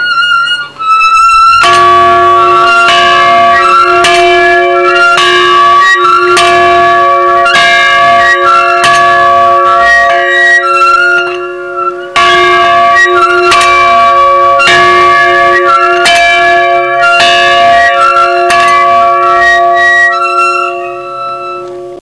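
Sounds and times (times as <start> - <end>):
bell: 0.0 - 22.0.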